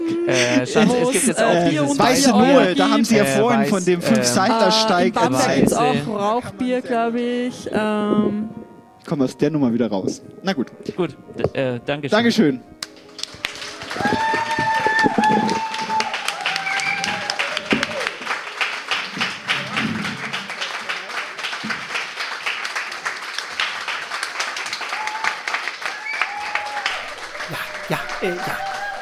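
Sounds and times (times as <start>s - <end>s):
laughter: 0.0s - 5.4s, 26.9s - 29.0s
speech: 0.3s - 12.7s
audience applause: 13.0s - 29.0s
audience cheering and shouting: 13.7s - 20.5s, 24.5s - 29.0s.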